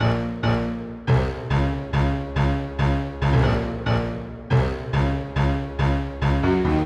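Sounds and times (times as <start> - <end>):
stacked piano riff: 0.0 - 6.8.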